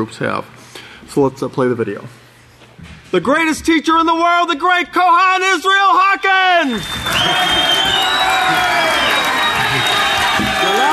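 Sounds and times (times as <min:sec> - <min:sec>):
speech: 0:00.0 - 0:02.2, 0:02.8 - 0:08.8
crowd cheering and applauding: 0:06.6 - 0:10.9.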